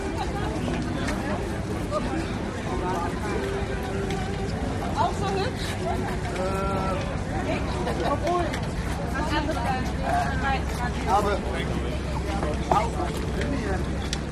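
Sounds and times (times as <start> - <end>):
street musician playing: 0.0 - 7.7
crowd on a bridge by day: 0.0 - 14.2.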